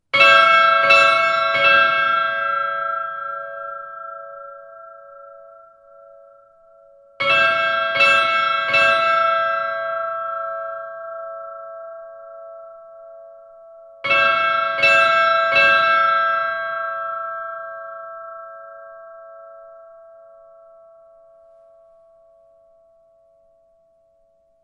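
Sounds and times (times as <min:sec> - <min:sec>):
church bells of midgardakirkja: 0:00.1 - 0:06.5, 0:07.2 - 0:13.1, 0:14.0 - 0:20.7.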